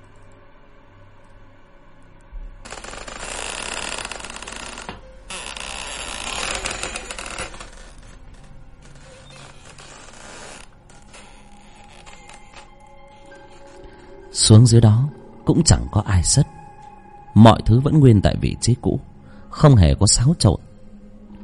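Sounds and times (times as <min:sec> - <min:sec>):
door creaking open: 0:02.6 - 0:15.2
speech: 0:14.5 - 0:16.5, 0:17.4 - 0:20.7.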